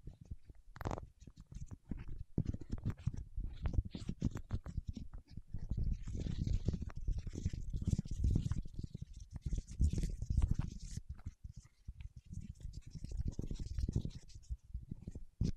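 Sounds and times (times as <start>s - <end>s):
fingertips rubbing wax: 0.9s - 15.5s.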